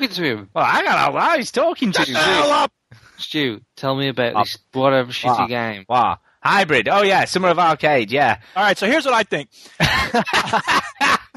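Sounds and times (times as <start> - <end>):
speech: 0.0 - 11.2
laughter: 2.0 - 2.6, 9.8 - 11.3
coughing fit: 9.7 - 11.3.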